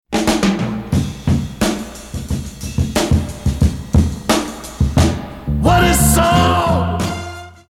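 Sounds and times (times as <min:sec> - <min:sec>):
music beat: 0:00.2 - 0:07.5.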